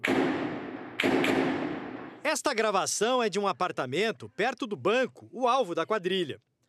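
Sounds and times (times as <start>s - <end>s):
gunshots and explosions during bank attack: 0.0s - 2.2s
speech: 2.3s - 6.5s.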